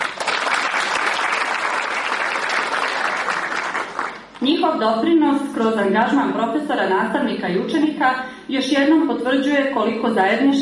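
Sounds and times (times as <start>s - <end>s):
audience applause at a cultural event in Andrijevica: 0.0s - 4.4s
speech: 4.4s - 10.5s.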